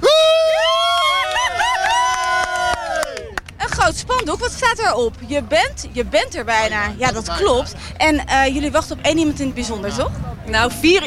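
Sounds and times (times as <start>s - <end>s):
crowd of spectators on a grandstand cheering and shouting: 0.0s - 3.6s
speech: 4.2s - 11.0s.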